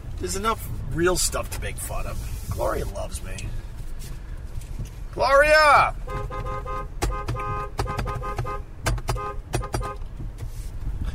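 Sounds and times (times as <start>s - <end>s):
low car engine rumble: 0.0s - 11.1s
speech: 0.2s - 3.6s, 5.2s - 10.1s
car horn beeping: 5.9s - 10.1s.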